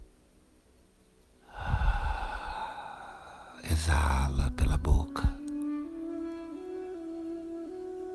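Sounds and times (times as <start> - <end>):
slow inhalation through the nose in a belly-breathing exercise: 1.4 - 3.6
speech: 3.8 - 5.4.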